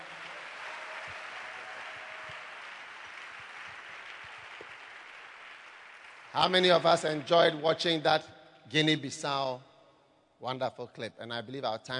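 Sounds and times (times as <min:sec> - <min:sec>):
audience applause: 0:00.0 - 0:07.6
speech: 0:06.3 - 0:09.7, 0:10.4 - 0:11.9.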